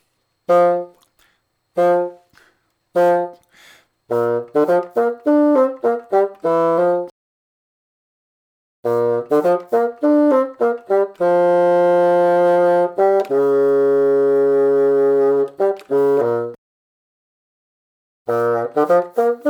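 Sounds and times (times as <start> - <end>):
bassoon imitating a baby elephant: 0.5 - 1.1, 1.8 - 2.4, 3.0 - 3.5, 4.1 - 7.1, 8.8 - 16.6, 18.3 - 19.4.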